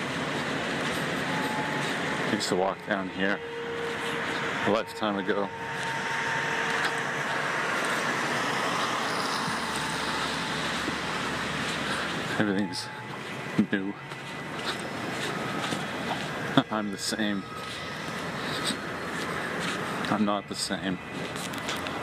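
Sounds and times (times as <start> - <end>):
street traffic on wet roads after rain: 0.0 - 22.0
speech: 2.3 - 3.6, 4.7 - 5.8, 12.4 - 13.0, 13.7 - 14.2, 16.6 - 17.8, 20.1 - 21.6.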